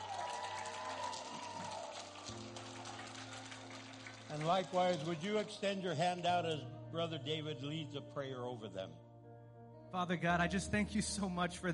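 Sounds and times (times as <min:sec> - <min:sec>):
church audience applause: 0:00.0 - 0:05.8
speech: 0:04.3 - 0:09.0, 0:09.9 - 0:11.7.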